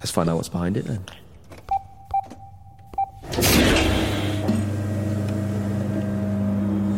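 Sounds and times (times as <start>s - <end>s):
speech: 0.1s - 1.2s
short electronic beeps: 1.7s - 3.2s
large metal sliding door opening: 3.2s - 5.9s.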